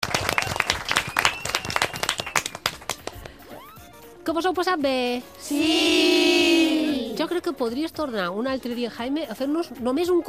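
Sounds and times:
children applauding loudly: 0.0s - 3.3s
whistle-like tone: 0.4s - 2.6s
speech: 4.3s - 6.6s, 7.2s - 10.2s.

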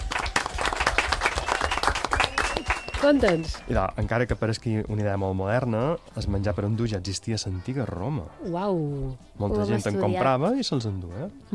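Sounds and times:
small quiz show audience clapping: 0.0s - 3.9s
speech: 3.0s - 11.5s.

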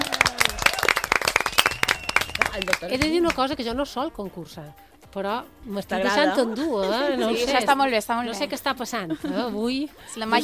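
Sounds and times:
applause from a few people in a studio: 0.0s - 3.4s
speech: 2.6s - 10.4s.

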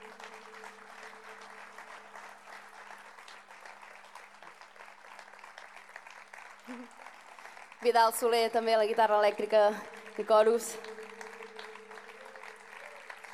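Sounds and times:
faint low hum: 0.0s - 4.7s, 7.8s - 13.3s
audience applause for the band: 0.0s - 13.3s
speech: 7.8s - 10.9s.

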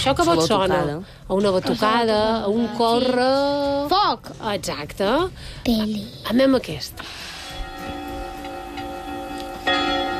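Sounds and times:
speech: 0.0s - 8.0s
church bells ringing: 7.4s - 10.1s.

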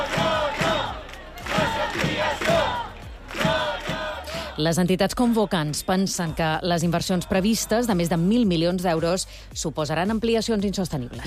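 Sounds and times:
large protest crowd chanting in unison: 0.0s - 8.4s
speech: 4.6s - 11.2s.

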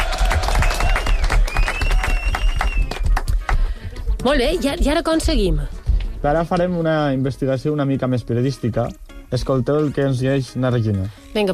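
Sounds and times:
applause: 0.0s - 3.8s
speech: 4.2s - 11.5s.

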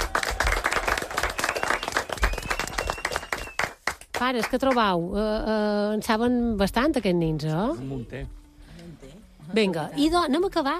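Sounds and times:
children applauding: 0.0s - 4.1s
speech: 4.2s - 8.4s, 9.5s - 10.7s.

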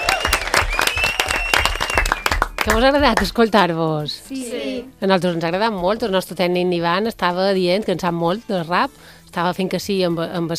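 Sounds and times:
applause: 0.0s - 3.4s
speech: 2.6s - 10.5s.

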